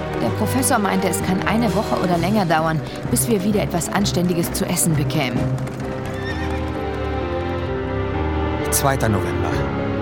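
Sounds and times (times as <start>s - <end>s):
hooves clip-clopping: 0.0s - 8.0s
speech: 0.4s - 5.8s, 8.8s - 9.8s
horses neighing: 5.5s - 7.8s.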